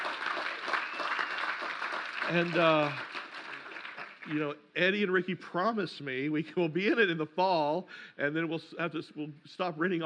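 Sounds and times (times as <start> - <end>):
audience clapping: 0.0 - 4.5
speech: 2.3 - 3.1, 4.3 - 10.0.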